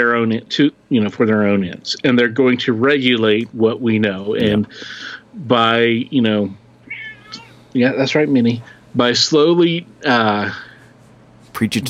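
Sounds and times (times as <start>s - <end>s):
speech: 0.0s - 6.6s, 7.7s - 10.6s, 11.6s - 11.8s
cat meowing: 6.8s - 7.6s.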